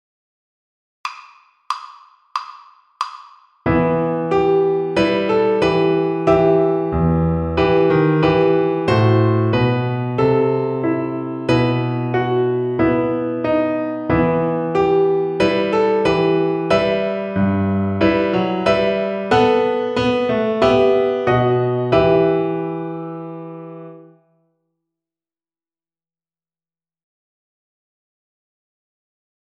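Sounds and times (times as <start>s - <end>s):
piano accompaniment: 3.6s - 24.3s.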